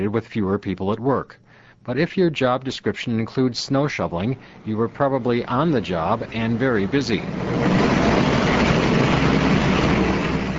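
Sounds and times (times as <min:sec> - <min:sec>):
speech: 0:00.0 - 0:08.9
two snow blowers clearing hotel sidewalks in downtown Milwaukee during a snowstorm: 0:04.4 - 0:10.5.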